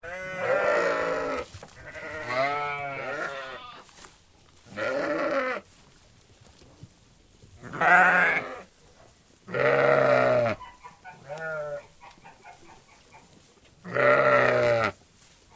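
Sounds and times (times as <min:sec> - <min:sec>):
flock of sheep: 0:00.0 - 0:04.1, 0:04.7 - 0:05.8, 0:07.6 - 0:08.7, 0:09.5 - 0:15.0.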